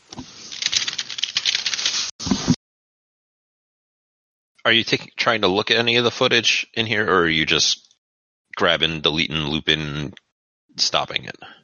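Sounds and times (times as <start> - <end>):
rapid typing on a keyboard: 0.5 - 2.2
speech: 4.7 - 7.8, 8.6 - 10.2, 10.8 - 11.6.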